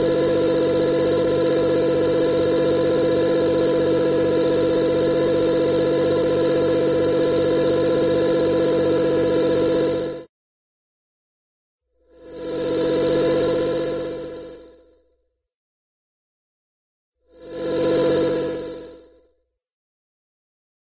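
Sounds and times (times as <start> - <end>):
sci-fi evil sub starting, running and stopping in a cartoon: 0.0 - 10.3, 12.1 - 15.2, 17.3 - 19.2.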